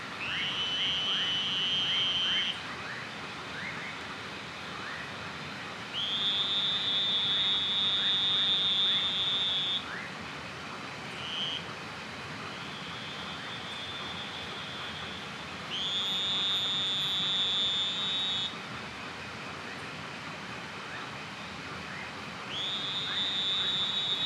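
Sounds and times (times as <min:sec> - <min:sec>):
two-colored oval frog buzzy whistle calls: 0:00.2 - 0:03.0, 0:05.9 - 0:10.1, 0:11.2 - 0:11.7, 0:12.6 - 0:18.5, 0:22.5 - 0:24.2
background hiss: 0:00.2 - 0:24.2.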